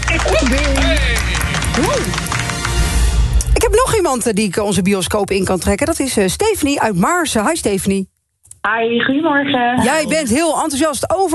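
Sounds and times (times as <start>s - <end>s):
applause: 0.0s - 3.4s
speech: 4.0s - 11.3s.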